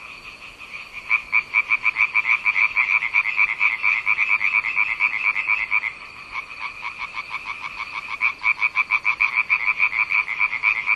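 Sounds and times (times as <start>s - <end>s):
frog croaking: 0.0s - 10.9s.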